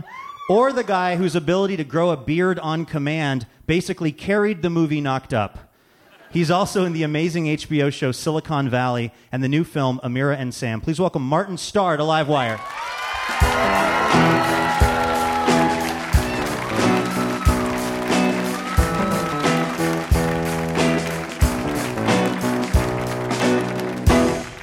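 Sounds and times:
speech: 0.5 - 5.7, 6.3 - 13.0
live band intro music: 13.4 - 24.6.

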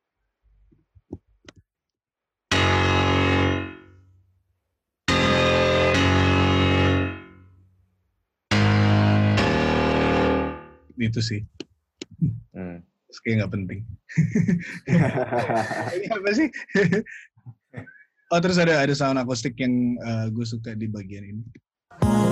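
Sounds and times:
distorted piano: 2.5 - 3.9, 5.1 - 7.5, 8.5 - 11.6
speech: 11.0 - 22.3
laughter: 14.1 - 18.0.

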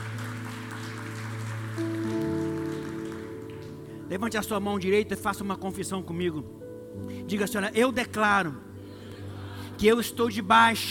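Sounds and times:
audience applause: 0.0 - 3.9
speech: 4.1 - 8.7, 9.8 - 10.8.

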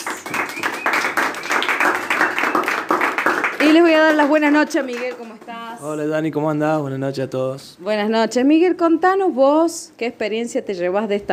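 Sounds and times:
audience applause: 0.0 - 5.7
speech: 3.8 - 11.3.

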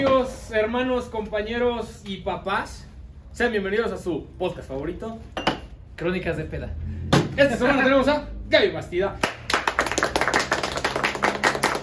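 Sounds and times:
speech: 0.0 - 5.4, 6.0 - 9.4
crowd applauding: 9.2 - 11.8.

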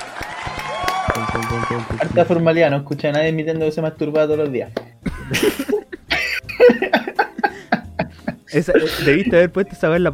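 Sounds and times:
applause: 0.0 - 2.5
speech: 1.2 - 5.7, 8.5 - 10.1
laughter: 5.0 - 9.3.

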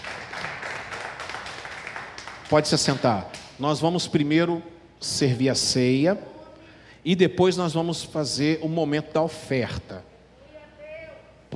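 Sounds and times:
crowd applauding: 0.0 - 3.4
speech: 2.5 - 6.4, 7.0 - 10.1.

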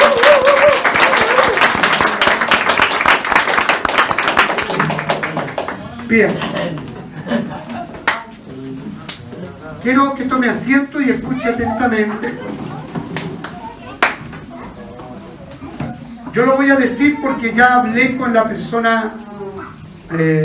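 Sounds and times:
audience applause: 0.0 - 6.1
speech: 6.1 - 6.5, 9.8 - 12.6, 16.4 - 19.3, 20.1 - 20.4
laughter: 6.2 - 8.1, 11.7 - 13.4.

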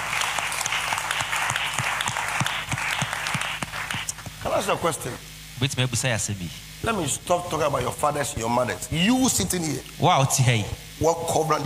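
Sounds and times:
audience applause: 0.0 - 4.3
speech: 4.6 - 11.6.

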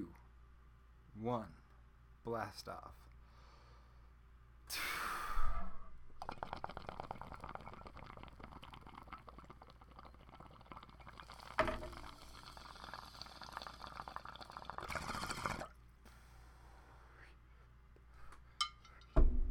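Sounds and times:
speech: 1.2 - 1.6, 2.2 - 3.0
sharp breathy exhale: 3.3 - 4.0, 4.7 - 5.9
inhaling marijuana smoke: 4.7 - 9.1, 10.8 - 17.4
crackling bubbling draw: 6.1 - 15.8.

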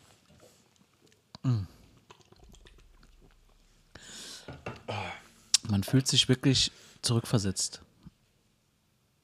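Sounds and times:
sipping and gulping beer: 0.2 - 4.5
speech: 1.5 - 1.7, 5.7 - 7.9
satisfied exhale: 3.9 - 5.3.

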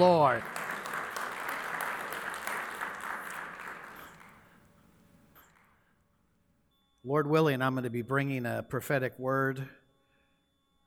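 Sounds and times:
speech: 0.0 - 0.6, 7.0 - 9.8
audience applauding: 0.0 - 5.8.

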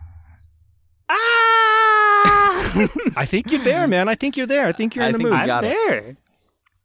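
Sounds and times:
adult screaming imitating a little kid: 1.1 - 2.8
laughter: 2.2 - 6.0
speech: 2.2 - 6.2.

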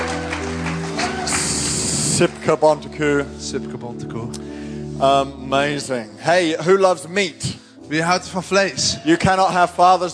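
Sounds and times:
audience clapping: 0.0 - 3.0
speech: 2.2 - 10.1.

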